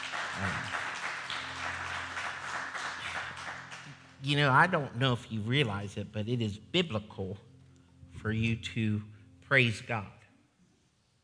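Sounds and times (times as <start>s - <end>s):
audience hand clapping: 0.0s - 4.5s
speech: 4.2s - 7.5s, 8.2s - 10.2s.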